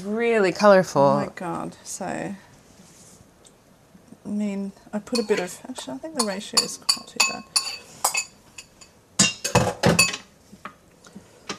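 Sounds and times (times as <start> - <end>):
speech: 0.0 - 2.5, 4.2 - 7.8
utensils clinking against a bowl mixing a vegetable dish: 5.1 - 5.6, 6.2 - 10.2.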